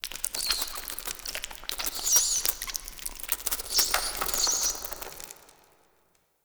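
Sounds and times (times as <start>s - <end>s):
mice sounds: 0.0s - 5.5s.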